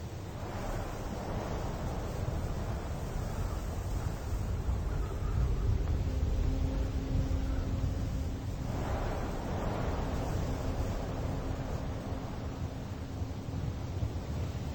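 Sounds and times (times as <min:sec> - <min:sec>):
desert ambience: 0:00.2 - 0:14.7.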